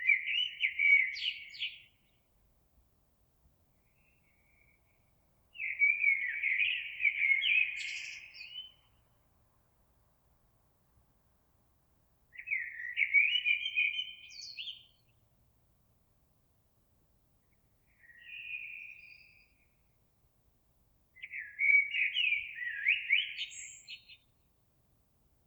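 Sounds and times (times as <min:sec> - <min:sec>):
Eurasian blackbird singing: 0:00.0 - 0:02.1, 0:05.6 - 0:09.0, 0:12.3 - 0:15.2, 0:17.9 - 0:19.8, 0:21.2 - 0:24.3.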